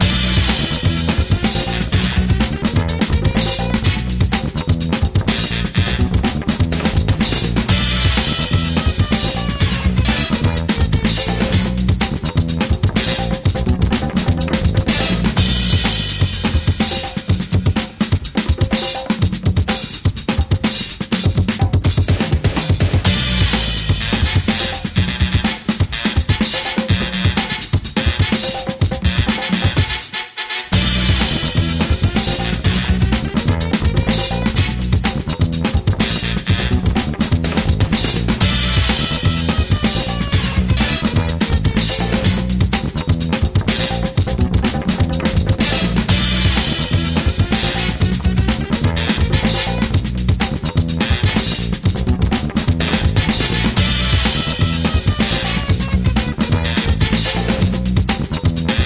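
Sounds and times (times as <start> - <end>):
funky beat: 0.0 - 58.8.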